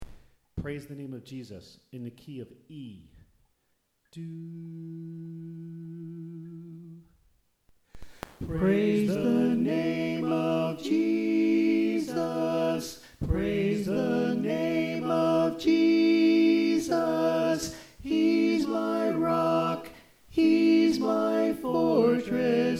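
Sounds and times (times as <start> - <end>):
tenor singing: 4.1 - 7.0, 8.4 - 22.7.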